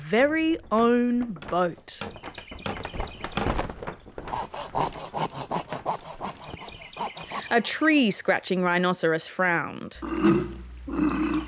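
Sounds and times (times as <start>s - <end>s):
speech: 0.1s - 2.4s, 7.5s - 11.4s
scraping and clattering: 0.6s - 5.1s
wood being sawed by hand: 4.2s - 7.8s.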